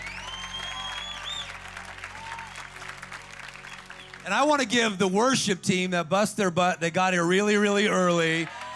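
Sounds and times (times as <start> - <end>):
audience clapping: 0.0 - 5.2, 7.8 - 8.7
speech: 4.2 - 8.6.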